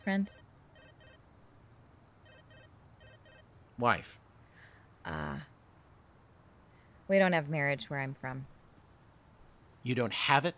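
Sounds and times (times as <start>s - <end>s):
speech: 0.0s - 0.5s, 3.8s - 4.2s, 5.0s - 5.5s, 7.1s - 8.5s, 9.8s - 10.5s
mobile phone ringing: 0.0s - 1.2s, 2.2s - 3.5s.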